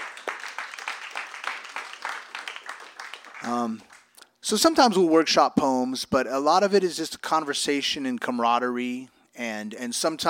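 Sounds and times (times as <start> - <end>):
audience applause: 0.0 - 4.1
speech: 3.4 - 10.2.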